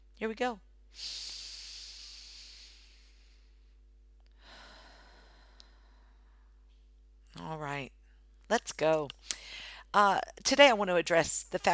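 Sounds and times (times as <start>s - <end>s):
speech: 0.2s - 1.3s, 7.4s - 11.7s
deep breath in through the nose and out through the mouth: 0.9s - 6.6s.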